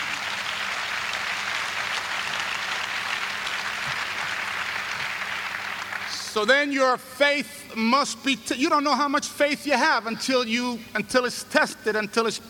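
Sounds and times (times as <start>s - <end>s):
audience clapping: 0.0s - 6.8s
speech: 6.4s - 12.4s.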